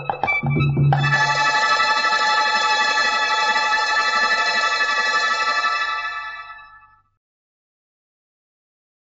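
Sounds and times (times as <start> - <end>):
instrumental music: 0.0 - 6.8.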